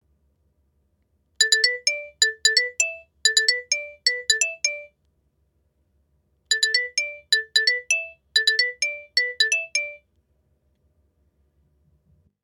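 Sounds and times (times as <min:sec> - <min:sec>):
xylophone: 0:01.4 - 0:04.9, 0:06.5 - 0:10.0.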